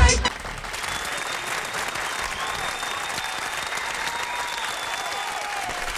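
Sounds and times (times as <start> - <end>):
audience hand claps: 0.2 - 5.9.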